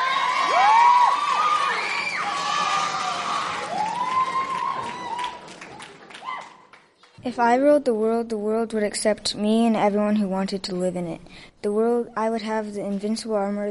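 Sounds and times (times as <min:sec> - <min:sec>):
crowd applauding: 0:00.0 - 0:07.2
speech: 0:07.2 - 0:13.6.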